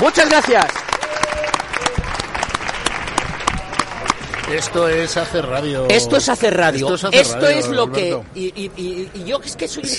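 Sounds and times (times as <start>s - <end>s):
speech: 0.0s - 0.9s, 4.5s - 9.9s
audience applause: 0.0s - 5.6s.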